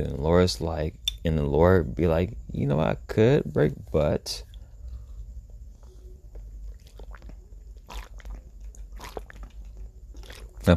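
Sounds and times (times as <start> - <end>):
speech: 0.0 - 4.5
low rumble: 0.0 - 10.7
person drinking water: 6.6 - 10.7.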